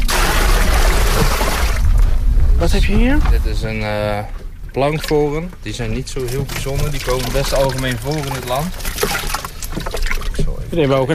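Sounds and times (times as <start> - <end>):
water pouring into a small bucket in a tub: 0.0 - 2.1, 3.8 - 10.6
speech: 2.6 - 9.1, 10.7 - 11.1.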